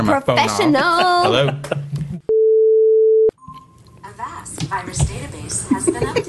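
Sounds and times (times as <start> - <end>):
speech: 0.0 - 2.1, 4.6 - 6.2
phone alert tone: 2.3 - 3.7.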